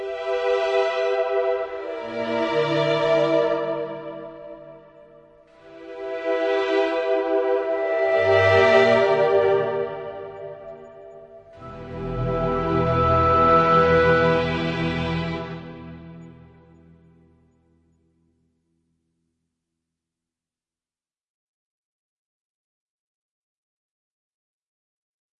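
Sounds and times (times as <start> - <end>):
hesitant ambient music: 0.0 - 18.3.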